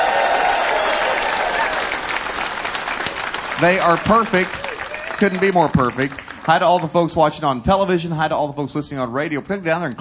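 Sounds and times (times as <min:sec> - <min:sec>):
studio audience applause at a country music show: 0:00.0 - 0:06.9
speech: 0:03.6 - 0:04.6, 0:05.2 - 0:09.9.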